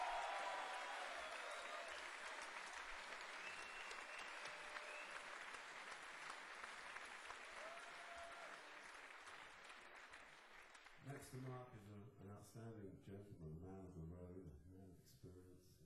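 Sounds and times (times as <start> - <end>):
audience applause: 0.0 - 11.6
speech: 11.1 - 15.8.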